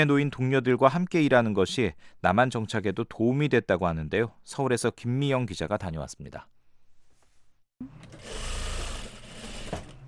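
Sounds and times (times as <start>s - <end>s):
speech: 0.0s - 6.5s, 7.8s - 8.5s
sewing machines running in garment factory: 8.0s - 10.0s.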